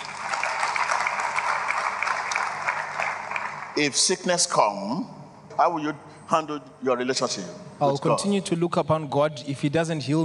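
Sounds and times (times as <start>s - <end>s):
crowd clapping: 0.0s - 4.0s
speech: 3.8s - 10.2s.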